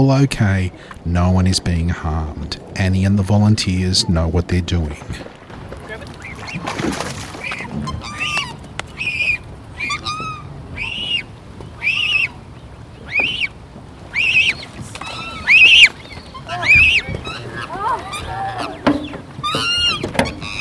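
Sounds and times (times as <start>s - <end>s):
speech: 0.0s - 5.4s
Black Swan cygnet squealing: 7.4s - 12.4s, 14.1s - 18.8s, 19.4s - 20.6s.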